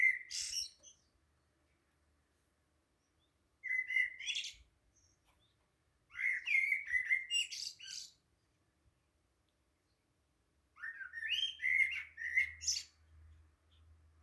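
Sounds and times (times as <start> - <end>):
birds chirping: 0.0 - 1.2, 3.0 - 8.6, 10.8 - 13.9.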